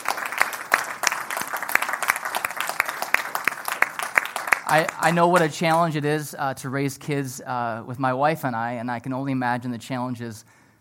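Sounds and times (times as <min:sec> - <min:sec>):
audience clapping: 0:00.0 - 0:06.0
speech: 0:04.7 - 0:10.6.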